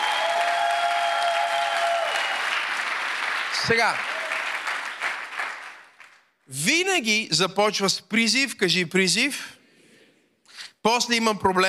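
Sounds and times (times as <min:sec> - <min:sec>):
audience clapping: 0:00.0 - 0:06.4
speech: 0:03.6 - 0:04.1, 0:06.5 - 0:09.6, 0:10.8 - 0:11.6.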